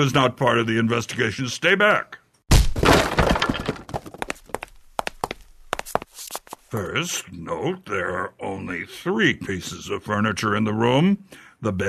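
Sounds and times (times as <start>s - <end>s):
speech: 0.0s - 2.2s, 6.7s - 11.8s
door being broken down: 2.5s - 4.2s.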